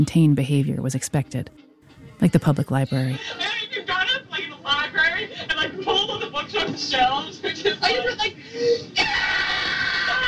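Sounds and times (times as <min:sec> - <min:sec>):
speech: 0:00.0 - 0:03.6, 0:05.3 - 0:09.4
laughter: 0:03.2 - 0:10.2
girl screaming on old tape recording: 0:09.0 - 0:10.2.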